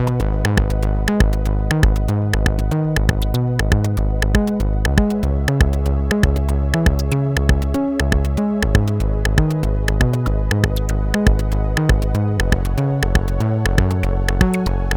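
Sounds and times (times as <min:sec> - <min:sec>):
Roland JD800 synthesizer: 0:00.0 - 0:14.9
TR808 drum machine: 0:00.0 - 0:14.9.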